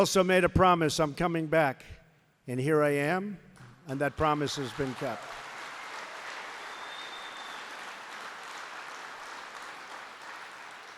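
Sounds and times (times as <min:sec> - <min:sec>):
speech: 0:00.0 - 0:05.4
applause: 0:04.2 - 0:10.9.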